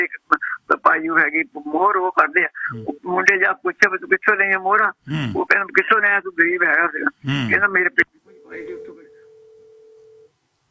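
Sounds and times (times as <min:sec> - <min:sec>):
speech: 0:01.1 - 0:08.8
phone call disconnecting tone: 0:08.3 - 0:10.3.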